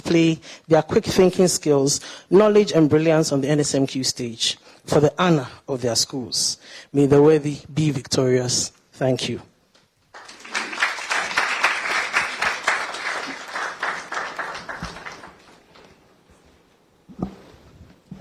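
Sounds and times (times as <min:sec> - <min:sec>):
speech: 0:00.0 - 0:09.5
erratic audience applause: 0:10.1 - 0:15.9
single clap: 0:10.2 - 0:15.6.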